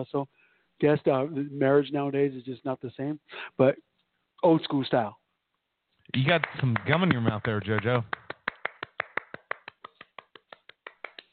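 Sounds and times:
speech: 0.0 - 5.2, 6.1 - 8.2
hand clapping: 6.2 - 11.3.

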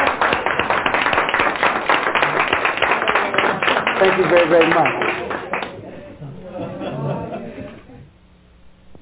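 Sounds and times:
audience applause: 0.0 - 6.1
speech: 4.0 - 5.2
laughter: 4.8 - 8.1.

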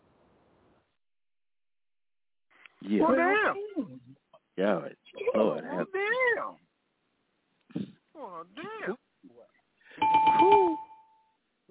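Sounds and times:
speech: 2.8 - 6.6, 7.8 - 9.0
game bell sound effect: 10.0 - 11.3.

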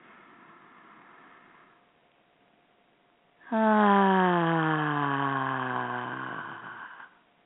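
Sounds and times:
big deep breaths: 0.0 - 2.0, 3.4 - 7.2.

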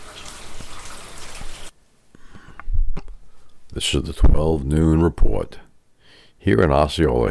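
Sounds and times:
rain falling: 0.0 - 1.7
speech: 3.8 - 5.6, 6.4 - 7.2.

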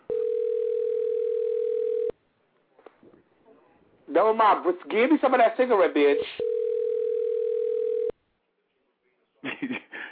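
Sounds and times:
telephone ringing: 0.1 - 2.2, 6.1 - 8.1
speech: 4.2 - 6.5.

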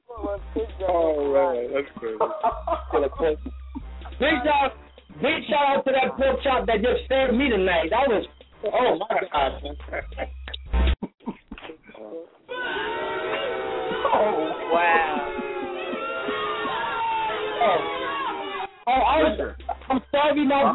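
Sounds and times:
speech: 0.3 - 3.6, 4.2 - 10.4, 18.9 - 20.7
laughter: 1.6 - 7.0, 8.4 - 12.0, 12.6 - 20.7
audience booing loudly: 12.5 - 19.4.

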